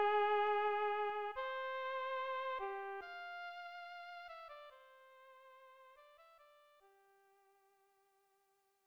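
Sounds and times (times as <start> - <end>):
flute: 0.0 - 4.8.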